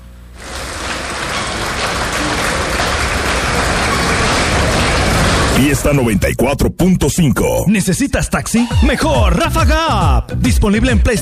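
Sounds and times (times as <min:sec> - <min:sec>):
applause: 0:00.4 - 0:05.9
speech: 0:05.6 - 0:11.1.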